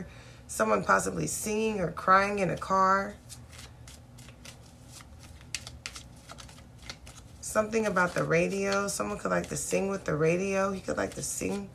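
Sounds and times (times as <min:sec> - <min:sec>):
speech: 0:00.0 - 0:03.4, 0:07.6 - 0:11.7
low hum: 0:00.0 - 0:11.7
deck of cards being shuffled: 0:03.2 - 0:11.7.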